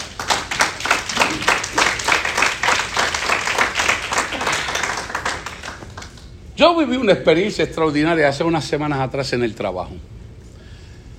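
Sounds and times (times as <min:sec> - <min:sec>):
audience applause: 0:00.0 - 0:06.3
speech: 0:06.6 - 0:10.2.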